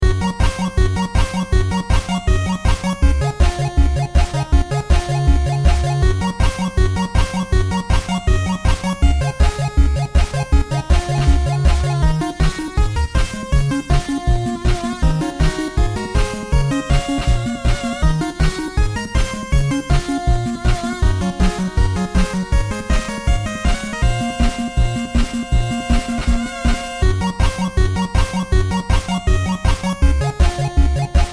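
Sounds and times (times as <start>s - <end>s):
NES 8-bit chiptune music: 0.0s - 31.3s.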